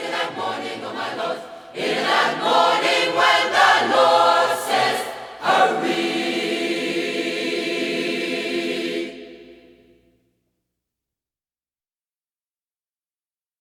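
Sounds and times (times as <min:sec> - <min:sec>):
gospel choir singing: 0:00.0 - 0:10.1.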